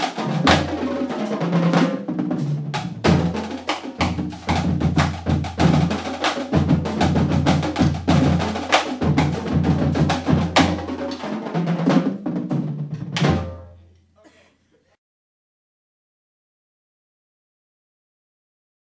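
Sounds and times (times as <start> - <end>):
drumline drumming: 0.0 - 13.6
marching band: 0.0 - 13.6.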